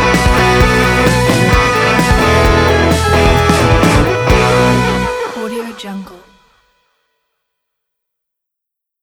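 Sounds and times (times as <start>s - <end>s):
alternative rock intro music: 0.0s - 6.5s.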